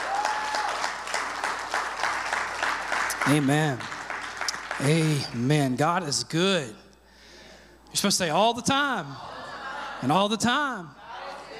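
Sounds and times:
audience clapping: 0.0s - 5.8s
speech: 3.3s - 3.9s, 4.8s - 6.8s, 7.9s - 9.3s, 10.0s - 11.0s
laughter: 8.9s - 11.5s.

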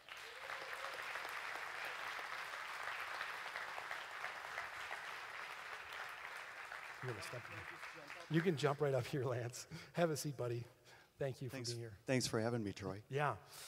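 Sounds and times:
audience clapping for a guest at a school district event: 0.0s - 9.4s
speech: 7.0s - 13.6s.

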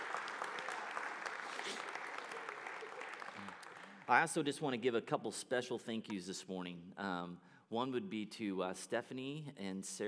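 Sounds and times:
audience applause: 0.0s - 4.2s
speech: 4.1s - 10.0s.

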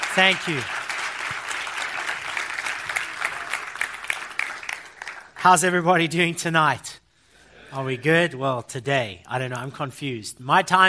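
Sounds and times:
congregation applauding a pastor from Johannesburg, South Africa: 0.0s - 5.8s
speech: 0.2s - 0.8s, 5.4s - 6.9s, 7.7s - 10.8s.

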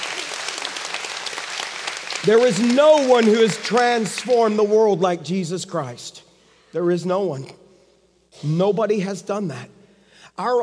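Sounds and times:
audience applause: 0.0s - 4.6s
speech: 2.2s - 7.6s, 8.4s - 9.8s, 10.4s - 10.6s.

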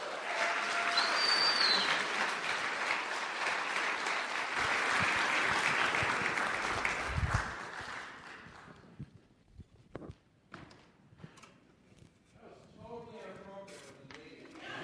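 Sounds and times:
faint cheers and whistles: 0.0s - 2.3s
crowd applauding: 0.0s - 9.1s.

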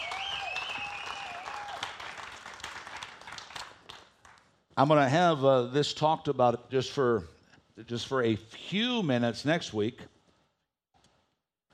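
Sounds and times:
audience clapping hands: 0.0s - 4.6s
speech: 4.8s - 10.1s.

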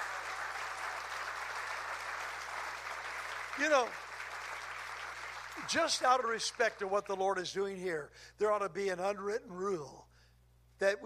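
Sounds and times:
audience applause: 0.0s - 6.8s
speech: 3.6s - 4.0s, 5.6s - 10.1s, 10.8s - 11.0s.

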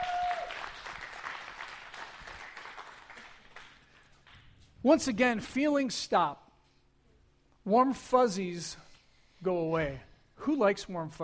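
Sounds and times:
audience applause: 0.0s - 4.6s
speech: 4.8s - 6.4s, 7.7s - 8.8s, 9.4s - 11.2s.

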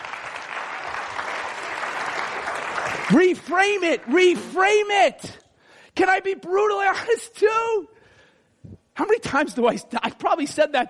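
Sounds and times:
audience clapping: 0.0s - 4.9s
speech: 3.1s - 5.4s, 6.0s - 8.0s, 9.0s - 10.8s.

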